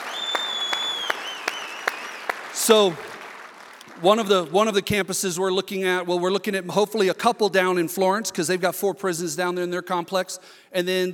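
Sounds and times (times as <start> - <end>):
audience cheering and applauding: 0.0 - 4.5
speech: 2.6 - 3.1, 4.0 - 11.1.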